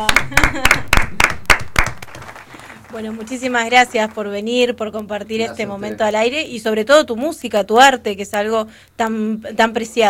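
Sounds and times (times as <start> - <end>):
speech: 0.0 - 1.2, 3.0 - 10.0
sharp hand claps in a radio studio: 0.0 - 2.4.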